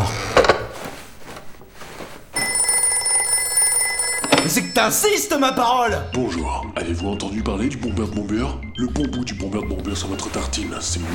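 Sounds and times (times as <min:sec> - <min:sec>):
telephone ringing: 0:01.8 - 0:06.2, 0:09.6 - 0:11.1
speech: 0:04.5 - 0:11.1.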